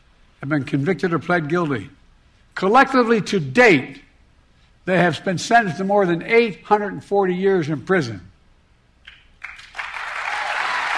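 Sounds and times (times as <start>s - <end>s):
speech: 0.4s - 2.0s, 2.6s - 4.0s, 4.8s - 8.3s
audience applauding: 9.4s - 10.9s.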